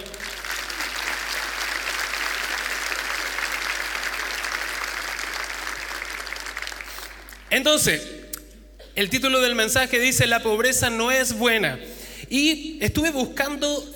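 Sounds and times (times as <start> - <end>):
audience applause: 0.0 - 7.5
speech: 7.6 - 8.2, 9.0 - 13.9.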